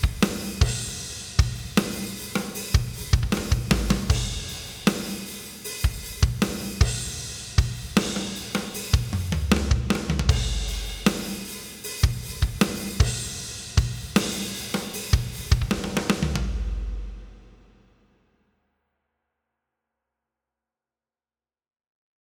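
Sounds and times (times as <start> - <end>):
loud compressed acoustic rock drums: 0.0 - 17.8.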